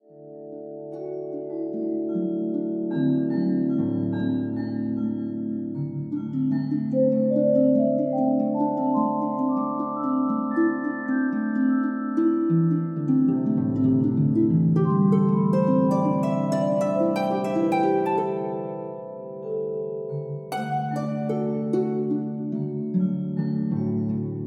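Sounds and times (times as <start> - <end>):
camp harp: 0.0 - 24.4.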